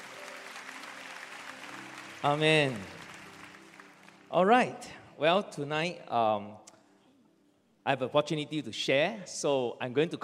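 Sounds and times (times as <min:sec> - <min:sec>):
audience hand clapping: 0:00.0 - 0:04.7
speech: 0:02.2 - 0:03.0, 0:04.3 - 0:06.7, 0:07.9 - 0:10.2.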